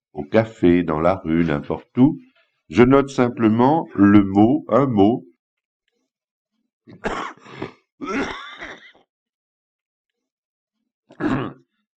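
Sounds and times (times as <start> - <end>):
speech: 0.3 - 5.3, 6.9 - 8.3
person coughing: 6.9 - 9.0, 11.1 - 11.6.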